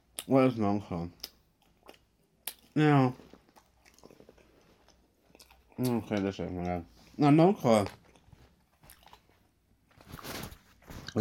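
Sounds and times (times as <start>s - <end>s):
speech: 0.3s - 1.3s, 2.8s - 3.3s, 5.8s - 8.0s
person biting and chewing a cheese snack: 1.2s - 6.8s, 7.8s - 11.1s.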